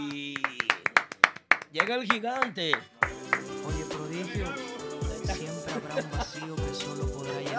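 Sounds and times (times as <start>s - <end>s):
applause: 0.1s - 3.6s
speech: 1.8s - 4.7s, 5.8s - 7.5s
laughter: 3.2s - 7.5s.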